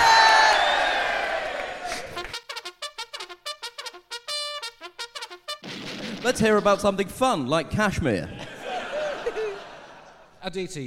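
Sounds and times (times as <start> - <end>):
audience cheering and whooping: 0.0 - 2.3
speech: 6.2 - 8.4, 10.4 - 10.8
laughter: 8.3 - 10.4.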